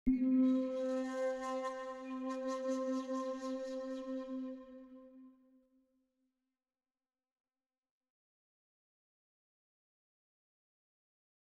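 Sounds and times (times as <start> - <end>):
ambient music: 0.1 - 5.2.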